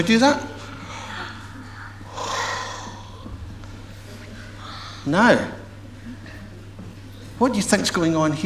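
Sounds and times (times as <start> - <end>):
speech: 0.0 - 0.5, 5.0 - 5.6, 7.4 - 8.4
steady low hum: 0.0 - 8.4
exhale onto the inside of a spoon: 0.6 - 5.6.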